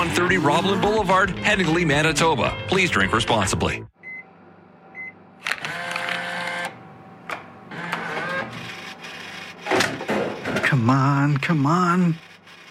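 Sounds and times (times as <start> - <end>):
speech: 0.0 - 3.9, 10.8 - 12.3
vending machine dispensing items: 5.4 - 10.9.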